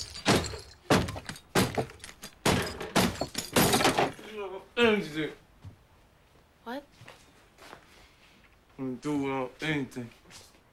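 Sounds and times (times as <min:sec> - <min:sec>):
chopping board edge smashing glass medicine vials: 0:00.0 - 0:04.2
speech: 0:04.8 - 0:05.4, 0:06.7 - 0:07.0, 0:08.8 - 0:10.5.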